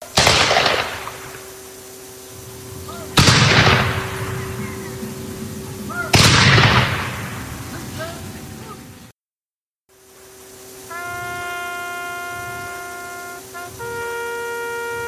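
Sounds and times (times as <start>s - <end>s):
rifle volleys from a firing squad at a memorial ceremony: 0.0s - 1.8s, 3.2s - 4.4s, 6.1s - 7.6s.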